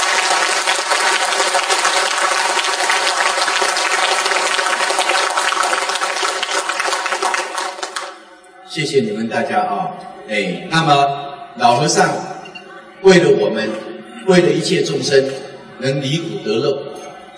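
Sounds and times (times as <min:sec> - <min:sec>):
audience applause: 0:00.0 - 0:08.3
speech: 0:08.8 - 0:12.3, 0:13.0 - 0:16.9.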